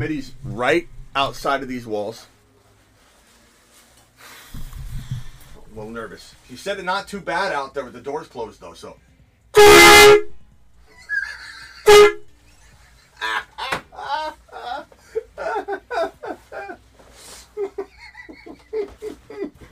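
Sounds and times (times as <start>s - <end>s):
speech: 0.0s - 2.3s, 5.8s - 10.3s, 11.9s - 12.2s
air horn blasts: 9.6s - 10.4s, 11.8s - 12.3s
laughter: 10.9s - 16.8s, 17.5s - 19.7s.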